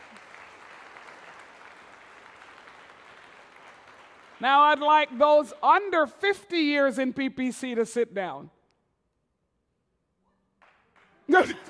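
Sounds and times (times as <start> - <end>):
audience applause: 0.0 - 4.4
speech: 4.4 - 8.6, 11.3 - 11.6.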